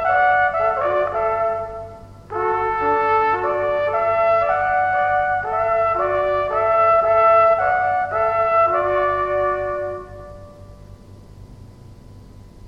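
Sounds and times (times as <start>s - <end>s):
natural trumpet: 0.0s - 11.1s.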